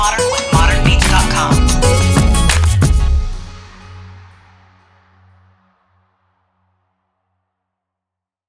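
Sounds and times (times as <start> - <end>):
urban guitar chops: 0.0 - 3.6.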